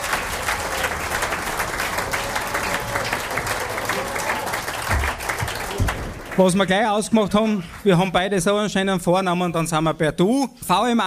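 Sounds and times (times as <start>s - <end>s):
audience applause for arriving guest: 0.0s - 8.4s
speech: 6.4s - 11.0s.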